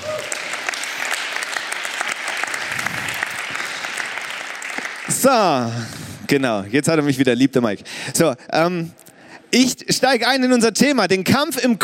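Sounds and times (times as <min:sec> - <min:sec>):
audience applause: 0:00.0 - 0:05.8
speech: 0:05.2 - 0:11.8.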